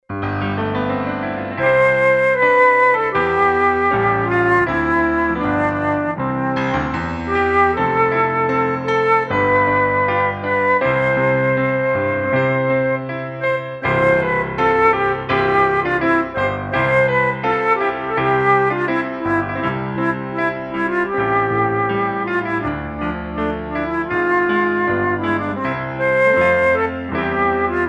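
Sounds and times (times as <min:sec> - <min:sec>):
flute: 0:01.2 - 0:27.8.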